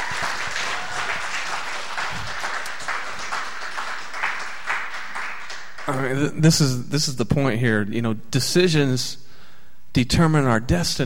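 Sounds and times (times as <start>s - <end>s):
audience applause: 0.0s - 6.2s
speech: 5.9s - 9.2s, 10.0s - 11.0s.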